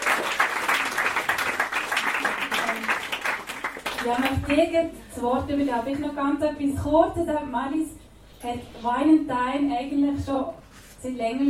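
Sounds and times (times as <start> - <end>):
audience applause: 0.0 - 4.5
speech: 4.0 - 11.4.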